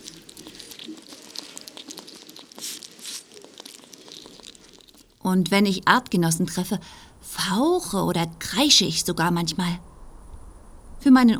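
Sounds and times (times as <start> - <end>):
hedgehog smacking loudly while eating: 0.0 - 5.2
speech: 5.3 - 9.9, 11.0 - 11.3.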